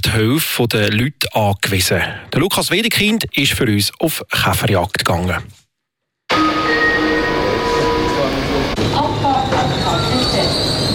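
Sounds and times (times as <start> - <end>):
speech: 0.0 - 5.6
passenger train pulling into a station: 6.3 - 10.9.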